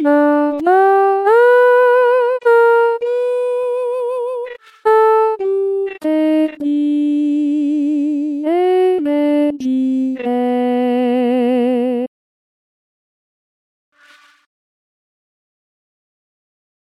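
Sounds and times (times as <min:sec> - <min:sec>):
alto voice singing: 0:00.0 - 0:12.1.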